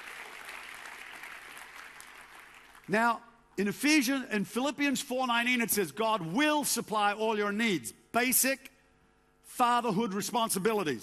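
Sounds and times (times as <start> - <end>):
audience clapping: 0.0 - 3.0
speech: 2.9 - 8.7, 9.5 - 11.0.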